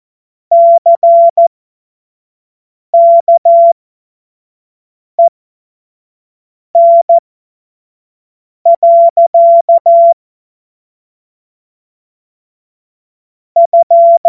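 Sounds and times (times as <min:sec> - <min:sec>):
morse code beeps: 0:00.5 - 0:01.5, 0:03.0 - 0:03.8, 0:06.8 - 0:07.2, 0:08.7 - 0:10.2, 0:13.6 - 0:14.2.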